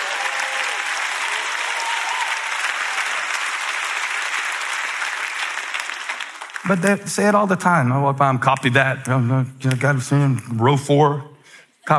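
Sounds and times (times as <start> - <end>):
audience clapping for the security team: 0.0 - 7.4
speech: 6.6 - 11.3.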